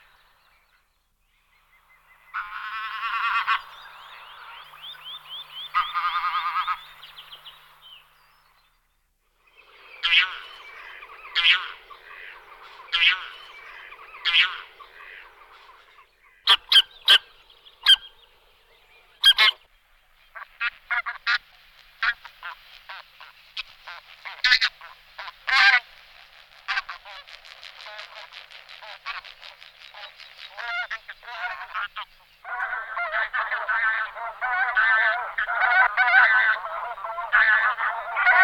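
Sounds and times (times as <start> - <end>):
bean goose flock honking: 2.4 - 3.7, 5.6 - 6.9, 11.3 - 15.3, 16.5 - 18.1, 19.2 - 19.6, 22.0 - 25.8, 30.0 - 38.4.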